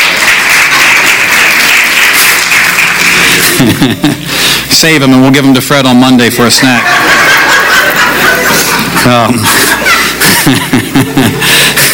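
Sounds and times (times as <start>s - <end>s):
audience applause: 0.0s - 4.1s
laughter: 3.3s - 4.3s, 6.4s - 11.9s
speech: 3.6s - 7.0s, 9.0s - 9.6s, 10.3s - 11.6s.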